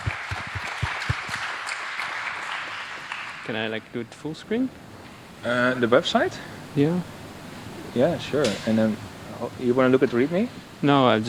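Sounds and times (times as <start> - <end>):
audience applause: 0.0 - 4.1
speech: 3.5 - 7.2, 7.9 - 11.2.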